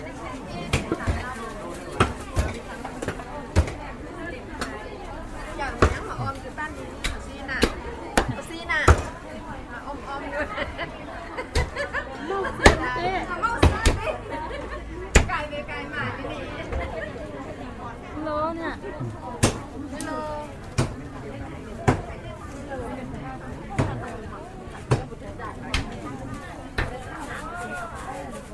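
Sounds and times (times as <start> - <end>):
meat market in Laos: 0.0 - 28.5
laughter: 10.3 - 15.1.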